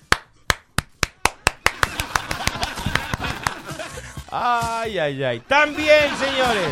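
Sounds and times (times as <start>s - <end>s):
crowd applause: 1.2s - 3.9s
laughter: 1.7s - 4.3s, 5.5s - 6.7s
speech: 4.3s - 6.7s.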